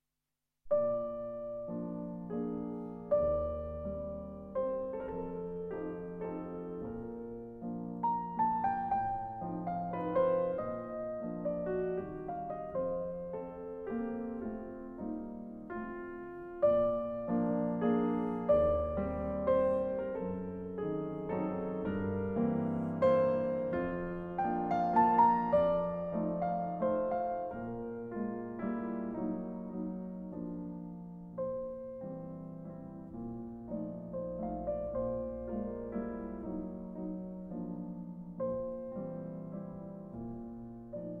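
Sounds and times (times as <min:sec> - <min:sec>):
piano in B flat major: 0:00.6 - 0:41.1.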